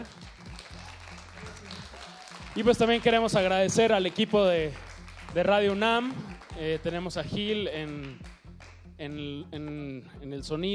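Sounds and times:
speech: 0.0s - 0.2s, 2.6s - 8.3s, 9.0s - 10.7s
audience applause: 0.0s - 6.6s.

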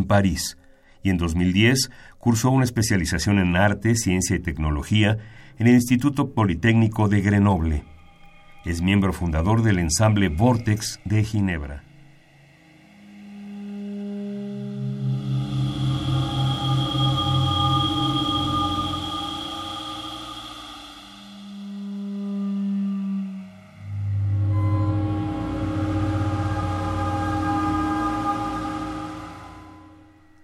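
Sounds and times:
speech: 0.0s - 7.9s, 8.6s - 11.9s
electronic textures: 6.7s - 30.4s
pulsing low throb: 7.0s - 30.4s
siren organ tones droning: 7.0s - 30.4s
dense buzzing chord: 11.8s - 30.4s.

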